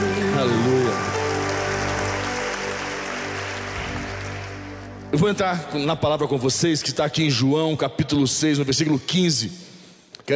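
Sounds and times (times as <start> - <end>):
audience applauding loudly: 0.0 - 5.6
speech: 5.1 - 9.6.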